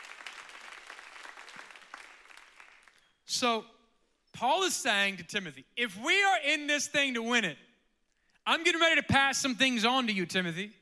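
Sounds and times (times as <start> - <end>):
audience clapping hands: 0.0 - 3.0
speech: 3.4 - 3.8, 4.4 - 7.7, 8.5 - 10.8.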